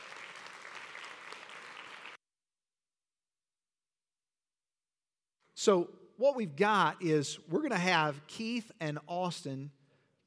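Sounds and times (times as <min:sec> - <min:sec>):
audience clapping: 0:00.0 - 0:02.2
speech: 0:05.6 - 0:10.2.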